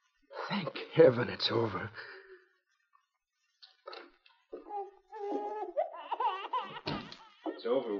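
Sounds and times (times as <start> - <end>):
speech: 0.5 - 2.2, 7.6 - 7.9
newborn baby's plaintive muffled wail: 4.2 - 7.9.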